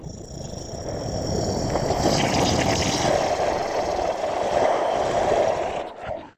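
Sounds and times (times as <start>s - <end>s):
long beast growl: 0.0s - 6.3s.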